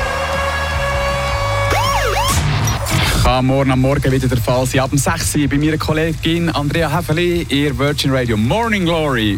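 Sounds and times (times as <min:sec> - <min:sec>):
siren alarm jingle: 0:00.1 - 0:02.9
speech: 0:03.4 - 0:09.3.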